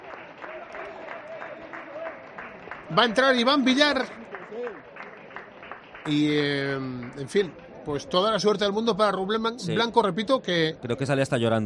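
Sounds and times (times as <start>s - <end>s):
large stadium crowd applauding: 0.0s - 9.3s
speech: 2.9s - 4.2s, 6.0s - 11.6s.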